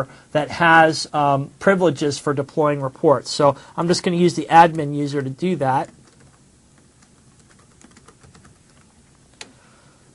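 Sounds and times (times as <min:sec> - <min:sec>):
speech: 0:00.0 - 0:06.0
faint keystrokes on a computer keyboard typing a password: 0:05.8 - 0:09.5.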